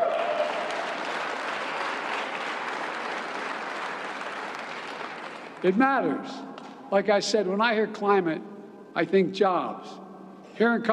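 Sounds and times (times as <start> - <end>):
crowd applauding: 0.0 - 5.8
speech: 5.6 - 10.0, 10.6 - 10.9.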